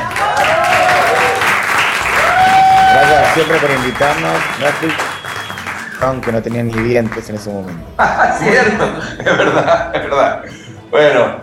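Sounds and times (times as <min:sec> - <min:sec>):
audience applause: 0:00.0 - 0:08.0
speech: 0:03.4 - 0:05.1, 0:06.0 - 0:11.4
laughter: 0:07.8 - 0:10.7.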